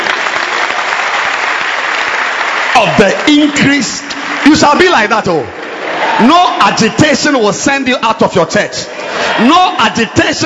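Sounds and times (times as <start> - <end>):
audience clapping: 0.0 - 6.9
speech: 2.8 - 5.6, 6.2 - 10.4.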